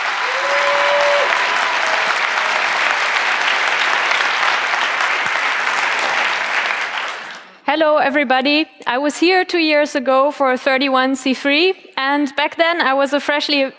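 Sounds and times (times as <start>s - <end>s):
large audience applause: 0.0s - 7.6s
speech: 7.7s - 13.7s.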